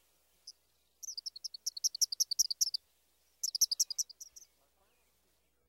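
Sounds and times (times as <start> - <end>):
Eastern Kingbird: 0.0 - 5.2
Brown-headed Cowbird: 0.0 - 5.5
Cedar Waxwing: 0.4 - 2.8, 3.4 - 4.5
European Starling: 0.4 - 2.8, 3.4 - 4.6.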